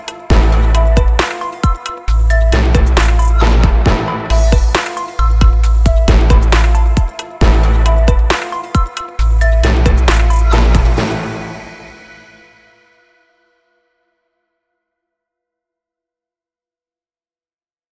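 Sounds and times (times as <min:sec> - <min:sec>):
trap beat: 0:00.0 - 0:12.2.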